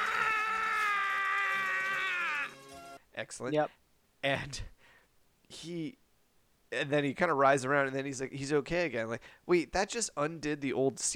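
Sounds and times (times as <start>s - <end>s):
man screaming weirdly: 0.0s - 2.7s
speech: 3.2s - 4.8s, 5.5s - 6.0s, 6.7s - 11.1s.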